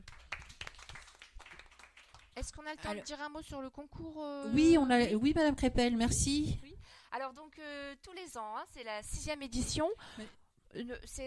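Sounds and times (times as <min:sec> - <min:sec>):
audience applauding: 0:00.0 - 0:02.4
speech: 0:02.4 - 0:11.2.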